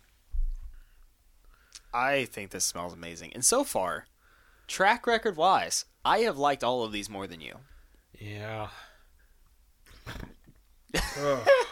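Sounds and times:
speech: 2.0 - 4.1, 4.7 - 8.9, 11.2 - 11.7
burp: 9.9 - 10.5.

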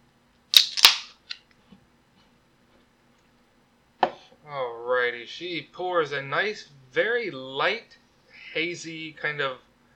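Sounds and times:
beer can cracking open: 0.5 - 1.3
speech: 4.4 - 9.7.

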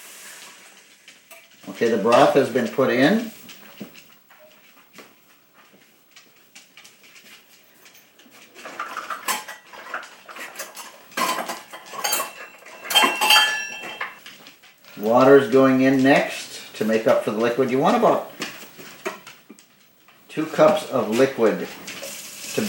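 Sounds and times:
speech: 1.7 - 3.4, 15.4 - 18.3, 20.4 - 21.9
ceramic ramekin and pot clinking and clattering: 10.6 - 14.2.

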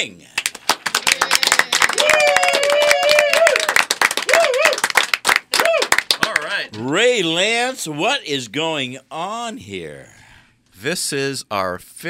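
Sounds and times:
speech: 0.0 - 0.4, 6.7 - 10.2, 10.8 - 12.0
crowd round of applause: 0.6 - 6.6.

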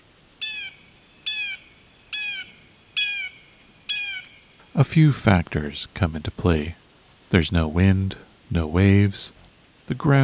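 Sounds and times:
blue jay call echoing: 0.4 - 4.8
speech: 4.8 - 10.2.

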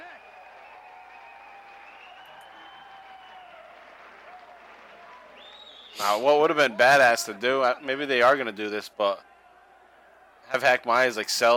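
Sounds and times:
large arena wrestling crowd cheering and applauding: 0.0 - 10.8
speech: 6.0 - 9.3, 10.5 - 11.5.

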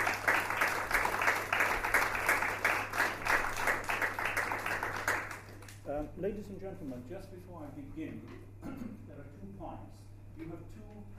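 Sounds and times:
audience applauding to welcome a lecturer: 0.0 - 5.8
speech: 6.2 - 11.1.

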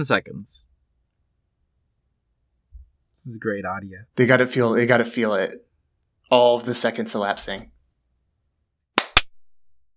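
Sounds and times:
speech: 0.0 - 0.7, 3.2 - 5.7, 6.3 - 7.8
sharp hand claps: 9.0 - 9.3.

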